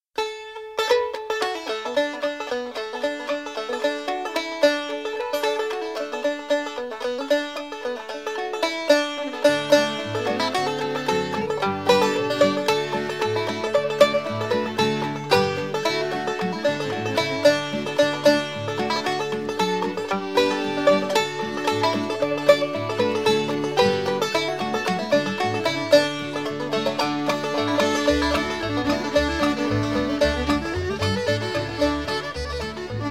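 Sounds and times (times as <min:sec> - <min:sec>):
instrumental music: 0:00.2 - 0:33.0.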